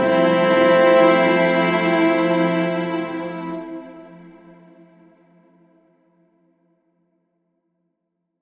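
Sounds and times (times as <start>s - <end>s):
cello exploration: 0.0s - 4.2s.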